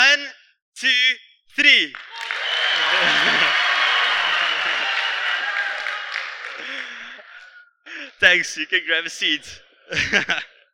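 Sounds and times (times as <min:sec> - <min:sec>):
speech: 0:00.8 - 0:02.1, 0:08.3 - 0:10.5
audience giving loud cheer: 0:02.0 - 0:07.6
laughter: 0:02.1 - 0:08.2, 0:09.8 - 0:10.7.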